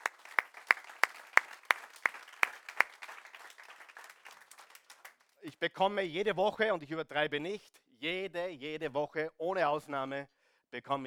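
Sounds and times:
audience applause: 0:00.0 - 0:05.4
speech: 0:05.4 - 0:11.0.

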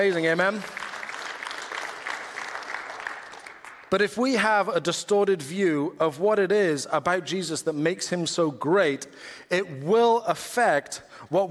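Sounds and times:
speech: 0:00.0 - 0:00.8, 0:03.9 - 0:11.4
audience clapping: 0:00.0 - 0:04.0.

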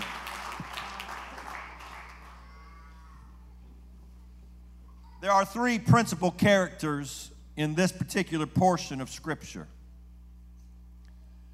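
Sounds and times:
audience clapping hands: 0:00.0 - 0:02.7
speech: 0:05.2 - 0:09.8.

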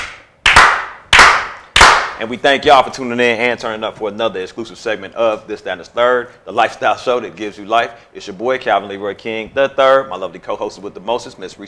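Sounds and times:
slow clap: 0:00.0 - 0:02.2
speech: 0:02.2 - 0:11.6.

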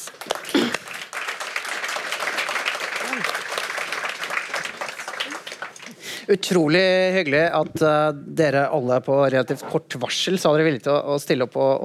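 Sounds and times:
audience applause: 0:00.0 - 0:06.2
speech: 0:06.3 - 0:11.8.

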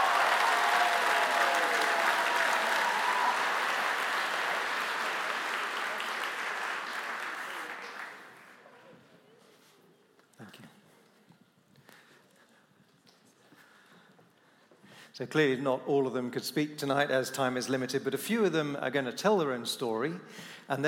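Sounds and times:
audience applause: 0:00.0 - 0:08.7
speech: 0:15.2 - 0:20.8.

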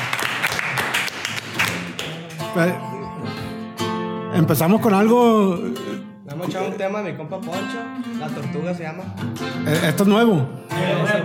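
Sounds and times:
audience applause: 0:00.0 - 0:02.4
speech: 0:02.6 - 0:02.9, 0:04.4 - 0:05.8, 0:06.4 - 0:11.2.

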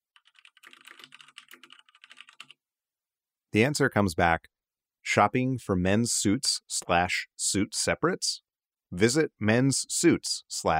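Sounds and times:
rapid typing on a computer keyboard into a chat bot: 0:00.0 - 0:02.6
speech: 0:03.6 - 0:04.5, 0:05.1 - 0:10.7.

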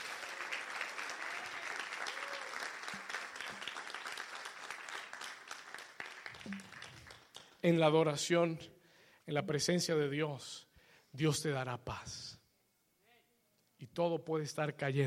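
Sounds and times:
audience applause: 0:00.0 - 0:07.6
speech: 0:07.6 - 0:12.4, 0:14.0 - 0:15.0.

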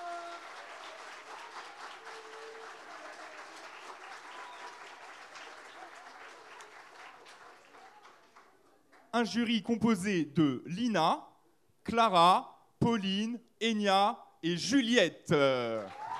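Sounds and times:
audience applauding the jury: 0:00.0 - 0:09.1, 0:15.7 - 0:16.1
speech: 0:09.2 - 0:11.3, 0:11.9 - 0:16.0.

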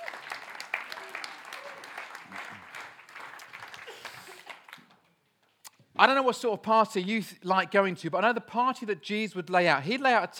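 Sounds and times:
audience applause: 0:00.0 - 0:04.9
speech: 0:06.0 - 0:10.3.

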